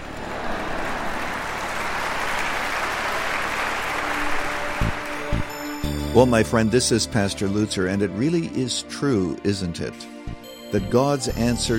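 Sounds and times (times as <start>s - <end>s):
audience clapping: 0.0s - 6.4s
speech: 6.2s - 11.7s.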